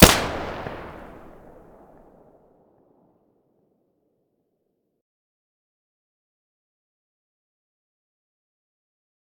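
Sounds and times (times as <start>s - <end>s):
weapon muzzle blasts: 0.0s - 2.0s.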